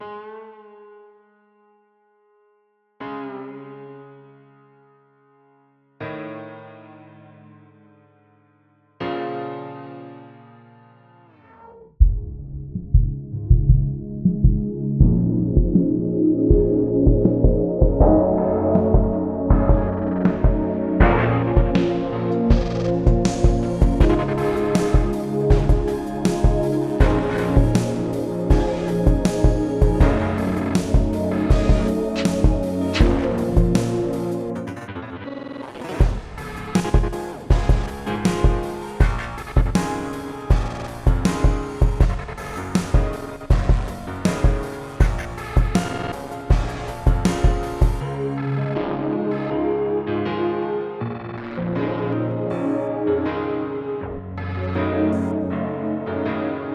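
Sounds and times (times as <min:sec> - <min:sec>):
instrumental music: 0:09.2 - 0:56.7.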